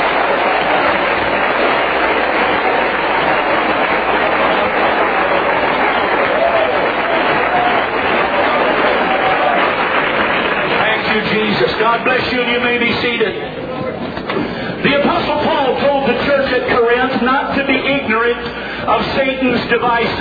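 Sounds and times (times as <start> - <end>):
audience clapping: 0.0 - 12.4
faint murmur of voices: 0.0 - 20.1
speech: 11.9 - 13.6, 18.9 - 20.1.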